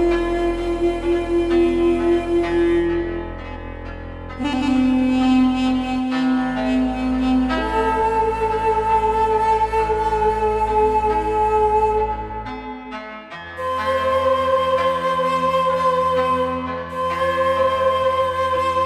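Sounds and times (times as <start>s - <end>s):
duduk tuned to 432 Hz: 0.0s - 18.8s.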